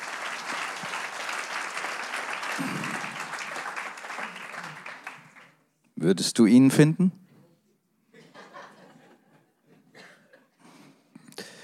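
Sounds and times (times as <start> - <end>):
audience applause: 0.0 - 5.6
speech: 2.6 - 3.1, 6.0 - 7.2
laughter: 8.1 - 10.5.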